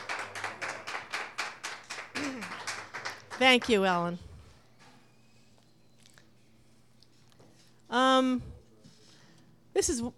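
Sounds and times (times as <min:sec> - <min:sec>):
hand clapping welcoming a writer at a reading: 0:00.0 - 0:03.8
speech: 0:03.4 - 0:04.3, 0:08.2 - 0:08.5, 0:09.8 - 0:10.1.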